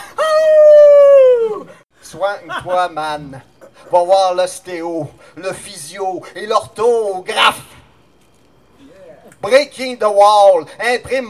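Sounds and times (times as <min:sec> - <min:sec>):
person imitating wolf howl: 0:00.0 - 0:01.8
laughter: 0:00.0 - 0:06.0
speech: 0:02.2 - 0:07.7, 0:09.4 - 0:11.2.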